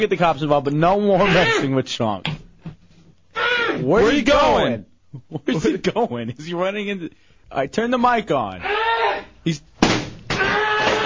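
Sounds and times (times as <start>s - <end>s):
speech: 0.0s - 2.3s, 3.8s - 8.8s, 9.4s - 9.7s
chairs being thrown: 9.8s - 11.0s.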